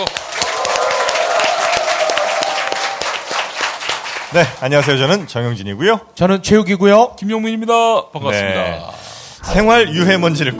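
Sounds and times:
studio audience applause and cheering: 0.0s - 5.4s
speech: 4.3s - 10.5s.

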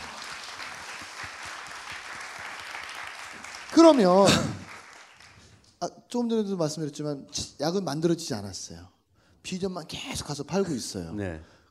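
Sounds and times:
audience applause: 0.0s - 5.6s
speech: 3.8s - 4.6s, 5.8s - 11.6s.

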